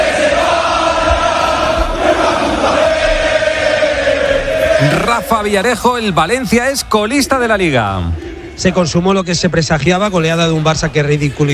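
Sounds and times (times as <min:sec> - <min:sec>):
stadium crowd shouting in protest: 0:00.0 - 0:09.0
speech: 0:04.8 - 0:11.5.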